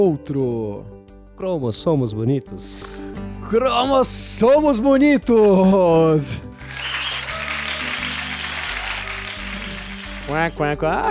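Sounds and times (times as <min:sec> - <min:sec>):
speech: 0:00.0 - 0:06.5, 0:10.3 - 0:11.0
applause: 0:06.5 - 0:10.8.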